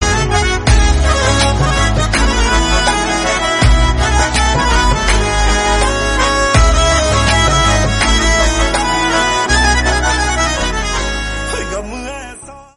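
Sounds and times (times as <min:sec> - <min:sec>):
instrumental background music: 0:00.0 - 0:12.7.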